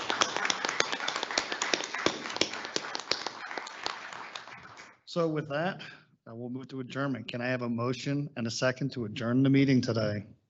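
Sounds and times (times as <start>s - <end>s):
round of applause: 0.0s - 5.0s
speech: 5.2s - 10.4s.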